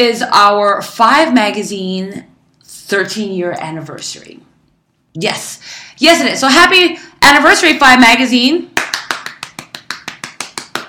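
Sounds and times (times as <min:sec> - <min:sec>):
speech: 0:00.0 - 0:02.3, 0:02.9 - 0:04.5, 0:05.2 - 0:08.8
hosts applauding themselves: 0:08.8 - 0:10.8.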